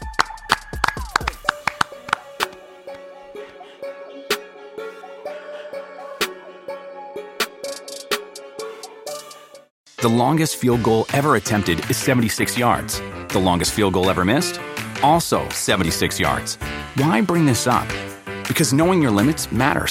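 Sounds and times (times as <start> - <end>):
clapping: 0.0 - 2.6
speech: 10.0 - 19.8.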